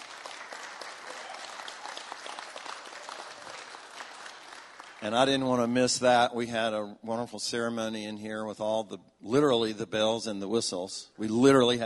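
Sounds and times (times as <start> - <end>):
audience applause: 0.0 - 5.3
speech: 5.0 - 11.8.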